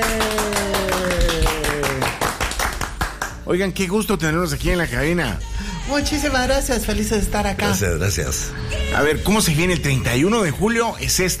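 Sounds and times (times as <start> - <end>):
person whooping: 0.0 - 2.2
people applauding arriving guests: 0.0 - 3.5
speech: 3.5 - 11.3.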